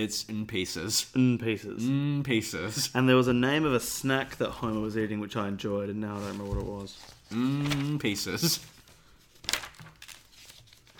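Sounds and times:
speech: 0.0 - 8.7
flicking through paper notes: 6.3 - 10.9.

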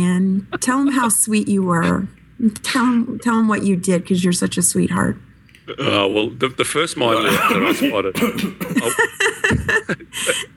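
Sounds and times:
speech: 0.0 - 9.3, 9.9 - 10.5
person coughing: 7.1 - 8.9
laughter: 7.1 - 10.5.

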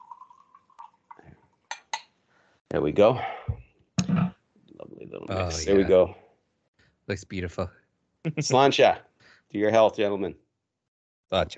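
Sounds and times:
water poured into a drink glass: 0.0 - 1.2
speech: 2.7 - 3.4, 5.4 - 6.2, 7.1 - 10.4, 11.3 - 11.5.

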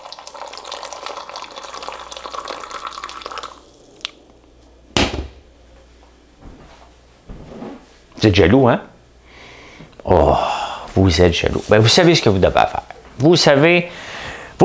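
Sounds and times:
tea pouring from a height: 0.0 - 4.1
speech: 8.2 - 8.9, 11.1 - 14.1.

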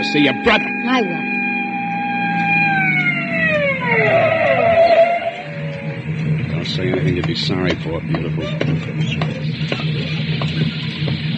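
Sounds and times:
police car siren: 0.0 - 7.1, 8.2 - 11.3
low continuous vehicle rumble: 0.0 - 11.3
speech: 0.1 - 1.4, 3.9 - 4.4, 6.7 - 10.1.

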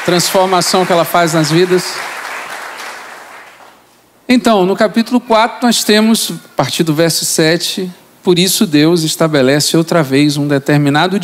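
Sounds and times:
speech: 0.0 - 2.1, 4.3 - 11.2
audience applause: 0.0 - 3.7.

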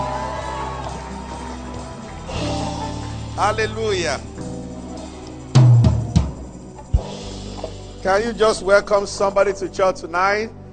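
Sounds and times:
audience shouting: 0.0 - 3.3
audience clapping: 0.0 - 4.6
speech: 3.4 - 4.4, 8.0 - 10.6.

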